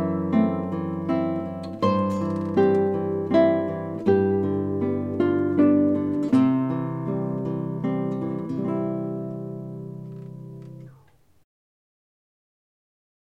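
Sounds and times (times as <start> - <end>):
guitar playing a Christmas carol: 0.0 - 11.1.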